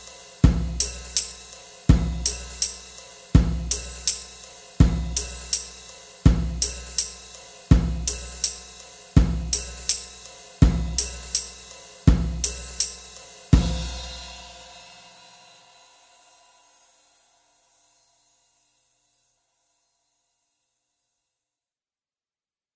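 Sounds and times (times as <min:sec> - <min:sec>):
rhythm: 0:00.0 - 0:14.8.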